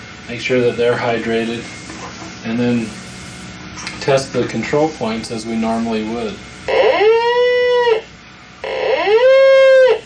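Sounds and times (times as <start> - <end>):
speech: 0.3 - 3.0, 4.0 - 6.8
testing device's sick cow sound: 6.7 - 10.0.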